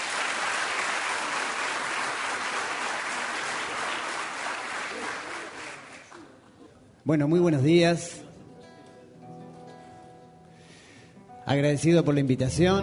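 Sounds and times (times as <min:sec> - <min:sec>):
audience applause: 0:00.0 - 0:06.4
speech: 0:07.1 - 0:08.2, 0:11.5 - 0:12.8.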